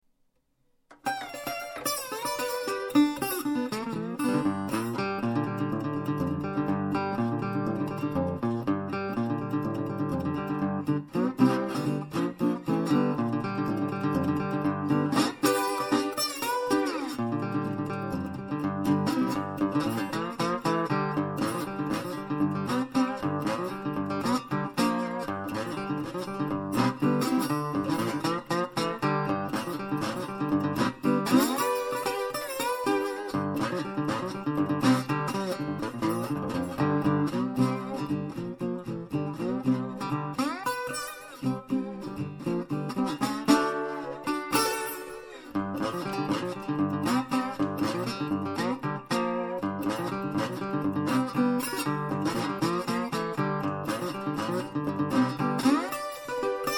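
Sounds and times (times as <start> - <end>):
acoustic guitar: 0.9 - 56.7.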